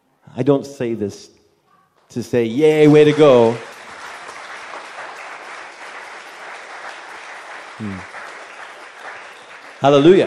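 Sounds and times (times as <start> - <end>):
speech: 0.4 - 1.4, 2.1 - 3.7, 7.8 - 8.1, 9.8 - 10.2
audience applause in a church: 2.6 - 10.2.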